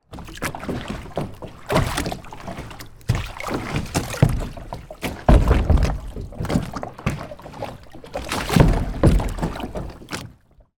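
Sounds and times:
transport boat kayak floating into a wood jetty: 0.0 - 10.6.

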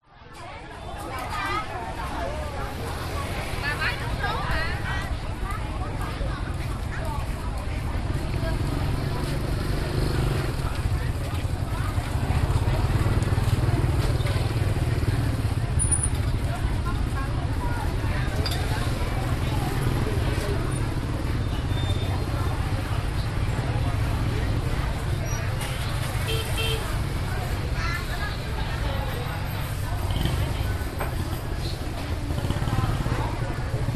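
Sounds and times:
street market crowd in Vietnam: 0.0 - 33.9.

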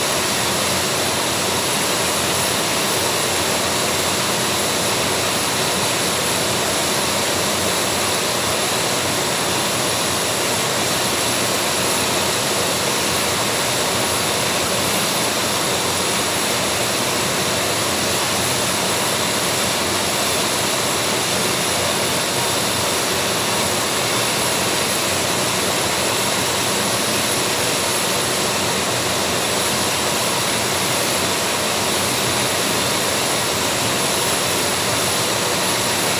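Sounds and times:
A10 jet engine: 0.0 - 36.1.

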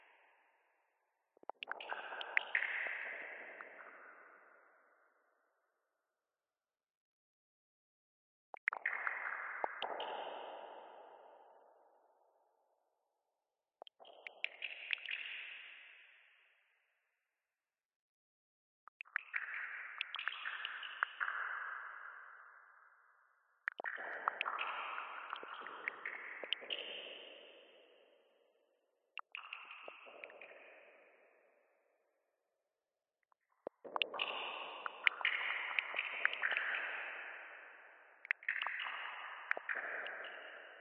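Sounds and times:
sparse water drops dripping with echo in sewers: 1.4 - 4.8, 8.6 - 12.2, 13.8 - 16.0, 19.0 - 28.3, 29.2 - 31.7, 33.3 - 40.7.

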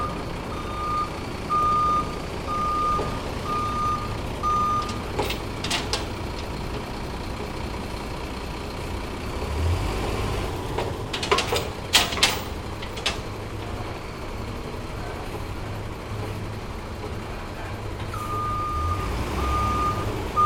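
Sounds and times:
skip lorry reversing into position to unload: 0.0 - 20.4.

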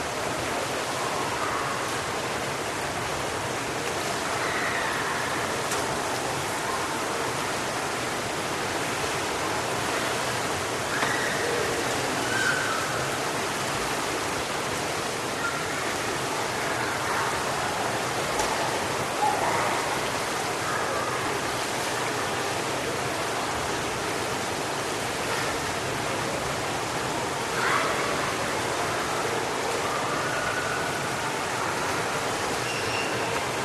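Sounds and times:
public pool ambience: 0.0 - 33.6.

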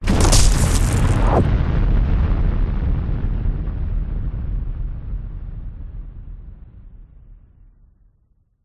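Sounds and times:
debris: 0.0 - 1.5
whoosh: 0.0 - 1.6
cinematic hit: 0.0 - 4.3
explosion: 0.0 - 6.7.

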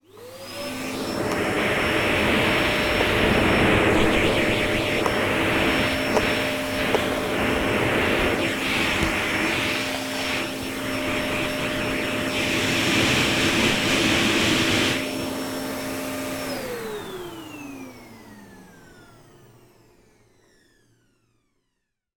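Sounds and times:
household vacuum cleaner running with hose close to microphone: 0.0 - 21.7.

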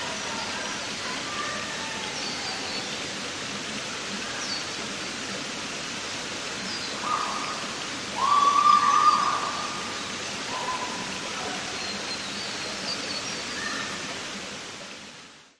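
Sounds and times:
forest creek water flowing in Queensland Australia: 0.0 - 15.5
young adults screaming in the distance: 1.1 - 2.8, 7.0 - 11.7.

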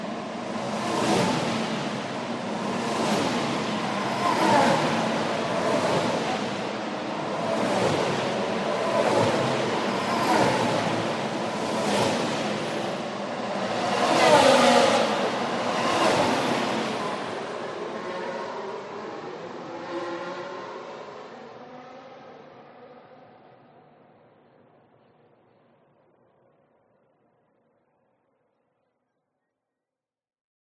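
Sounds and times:
F1 race car passing at speed on a race track: 0.0 - 24.2.

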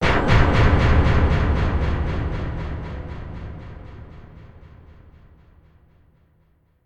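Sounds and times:
crash: 0.0 - 5.4
impact boom: 0.0 - 5.8.

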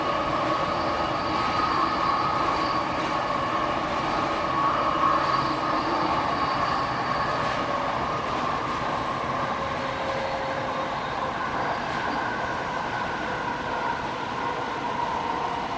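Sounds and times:
sky train noise at JFK airport train station: 0.0 - 15.7.

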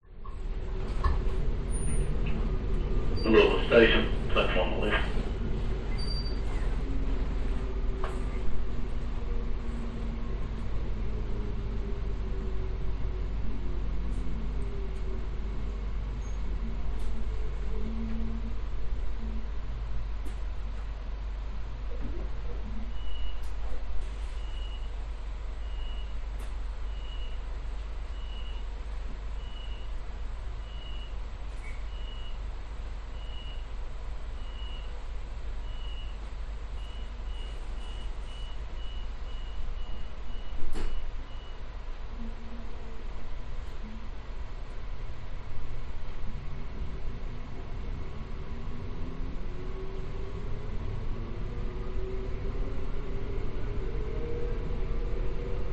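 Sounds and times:
train interior moving slowly into a stop: 0.0 - 55.7
tannoy announcement: 3.2 - 5.2.

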